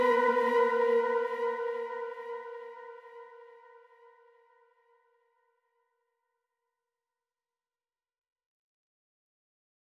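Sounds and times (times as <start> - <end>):
flute: 0.0 - 4.6.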